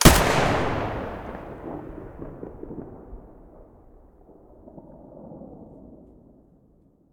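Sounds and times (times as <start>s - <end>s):
AK105 muzzle blast in stereo: 0.0s - 3.0s.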